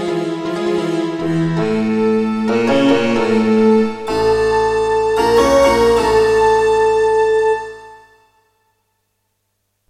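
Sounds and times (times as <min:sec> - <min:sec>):
soundfont intro music: 0:01.1 - 0:08.0.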